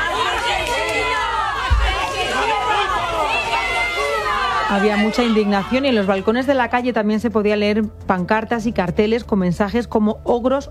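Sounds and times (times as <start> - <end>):
indignant Hornachos residents shouting: 0.0 - 6.5
speech: 4.7 - 10.7.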